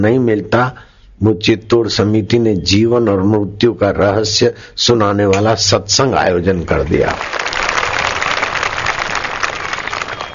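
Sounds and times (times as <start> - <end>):
speech: 0.0 - 7.5
audience clapping: 6.8 - 10.3.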